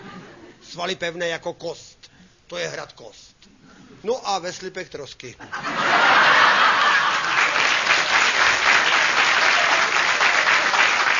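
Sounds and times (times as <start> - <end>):
laughter: 0.0 - 0.6, 5.4 - 8.1
speech: 0.7 - 1.9, 2.5 - 3.4, 4.0 - 6.4
crowd applauding: 6.1 - 11.1.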